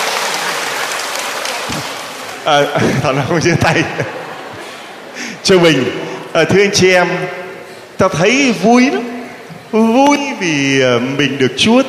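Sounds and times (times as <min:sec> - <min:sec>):
church congregation clapping to welcome parishioners of Châu Bình: 0:00.0 - 0:03.6
laughter: 0:00.0 - 0:06.3
speech: 0:02.4 - 0:04.2, 0:05.5 - 0:07.4, 0:08.0 - 0:09.1, 0:09.7 - 0:11.8.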